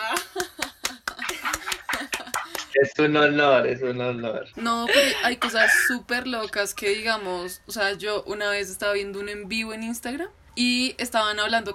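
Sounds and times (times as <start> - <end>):
hand claps: 0.0 - 2.8
laughter: 0.0 - 2.8
people chatting: 0.0 - 11.7
speech: 2.8 - 11.7.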